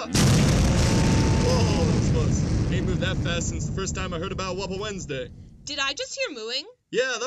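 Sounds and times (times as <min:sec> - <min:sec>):
bomb explosion: 0:00.2 - 0:06.0
speech: 0:03.4 - 0:07.2.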